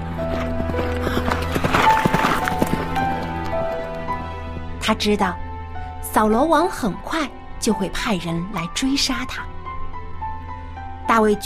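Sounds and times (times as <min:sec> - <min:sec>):
horse galloping with rider: 0:00.0 - 0:04.1
speech: 0:04.9 - 0:05.4, 0:06.2 - 0:09.6, 0:11.1 - 0:11.4.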